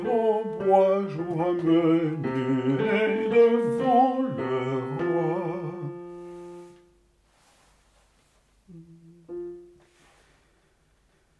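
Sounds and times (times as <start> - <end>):
basses singing: 0.0 - 6.1.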